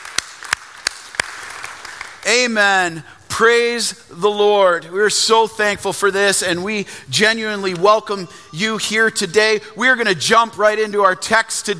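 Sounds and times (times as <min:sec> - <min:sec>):
church congregation applauding: 0:00.0 - 0:02.6
speech: 0:02.3 - 0:11.7.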